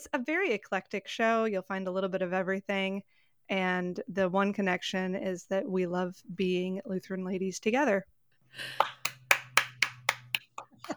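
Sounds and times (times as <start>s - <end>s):
speech: 0.0s - 9.0s
low constant hum: 8.6s - 10.9s
sharp hand claps: 8.8s - 10.9s.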